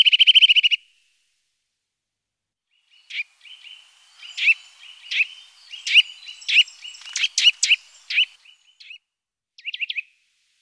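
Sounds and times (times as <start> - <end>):
Eurasian nuthatch calls of loud downslurred piping whistles: 0.0 - 0.8, 2.9 - 9.0, 9.6 - 10.1.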